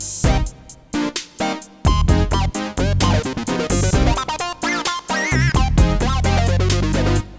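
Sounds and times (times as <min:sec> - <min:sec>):
OB-8 Minimoog Memorymoog analog synthesizer: 0:00.2 - 0:07.3.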